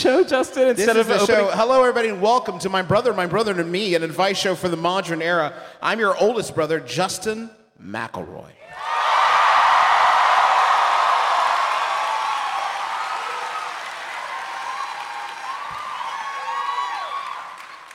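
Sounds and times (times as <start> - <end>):
speech: 0.0 - 8.8
live audience cheering clapping and whooping: 8.6 - 17.9.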